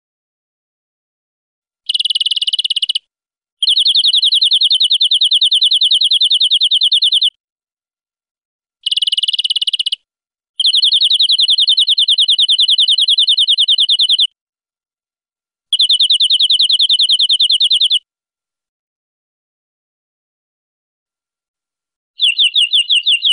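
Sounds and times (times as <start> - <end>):
European greenfinch buzzy trill: 1.9 - 3.0, 3.6 - 7.3, 8.8 - 10.0, 10.6 - 14.3, 15.8 - 18.0, 22.2 - 23.3.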